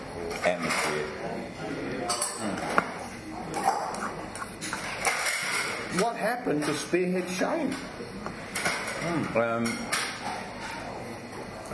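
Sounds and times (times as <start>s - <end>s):
speech: 0.4s - 2.5s, 6.0s - 10.0s
dishes clinking being washed: 2.0s - 2.9s, 3.5s - 6.8s, 8.5s - 11.0s.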